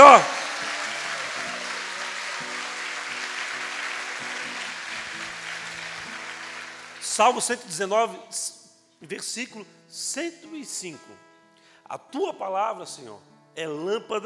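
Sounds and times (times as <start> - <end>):
clapping: 0.0 - 7.4
speech: 7.2 - 11.3, 11.9 - 14.2.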